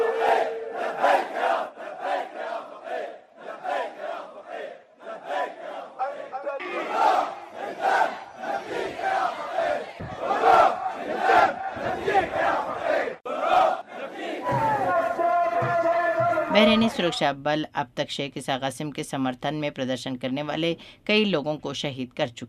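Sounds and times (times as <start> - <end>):
protesters marching and chanting slogans in Bahrain: 0.0 - 17.1
speech: 16.7 - 22.4.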